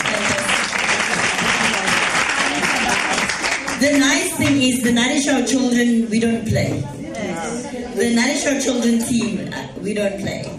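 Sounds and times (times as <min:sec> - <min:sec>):
audience applause: 0:00.0 - 0:03.8
speech: 0:03.8 - 0:07.0, 0:08.0 - 0:10.5.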